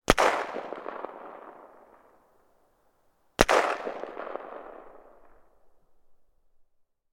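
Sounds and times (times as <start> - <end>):
AK-47 gunshots: 0.1 - 1.9, 3.4 - 5.0.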